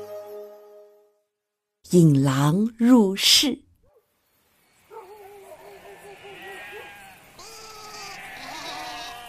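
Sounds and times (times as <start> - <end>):
speech: 1.9 - 3.6
sheep bleating: 5.9 - 9.2.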